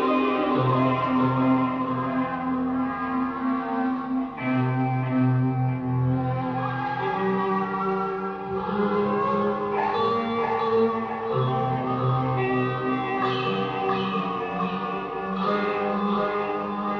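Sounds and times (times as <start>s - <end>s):
guitar: 0.0s - 16.9s.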